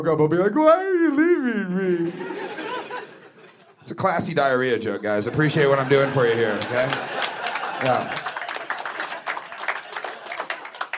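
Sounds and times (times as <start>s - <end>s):
speech: 0.0s - 2.4s, 3.8s - 7.2s, 7.8s - 8.3s
laughter: 1.0s - 3.8s, 5.2s - 10.9s
audience applause: 5.8s - 10.9s.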